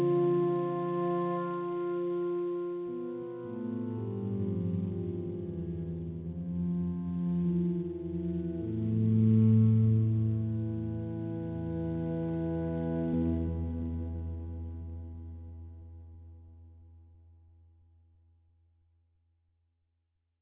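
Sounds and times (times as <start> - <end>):
organ: 0.0 - 15.7.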